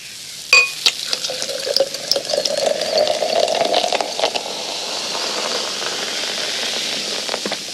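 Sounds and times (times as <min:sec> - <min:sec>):
beer being poured into a glass: 0:00.6 - 0:07.4.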